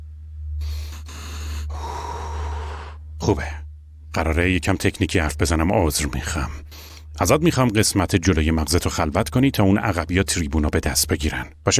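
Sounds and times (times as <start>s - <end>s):
low hum: 0.0s - 11.7s
group breathing deeply together: 0.6s - 3.1s, 6.7s - 7.1s
speech: 3.2s - 3.6s, 4.2s - 11.7s.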